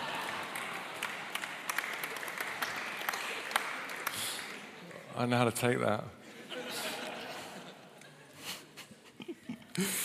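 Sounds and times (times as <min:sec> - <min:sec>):
audience clapping: 0:00.0 - 0:05.7
speech: 0:05.2 - 0:06.2, 0:09.8 - 0:10.0
laughter: 0:06.2 - 0:10.0.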